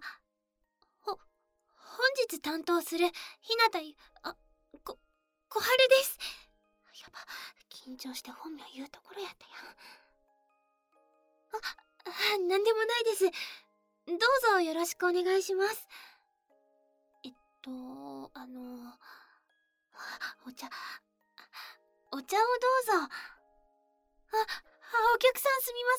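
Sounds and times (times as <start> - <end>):
music box melody: 0.2 - 25.9.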